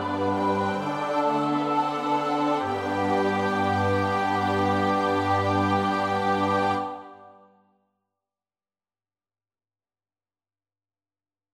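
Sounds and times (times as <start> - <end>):
soprano alto tenor bass voices: 0.0 - 7.4.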